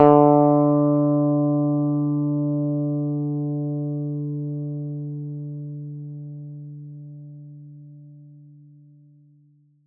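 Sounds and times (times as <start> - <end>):
plucked electric guitar note D3: 0.0 - 4.1.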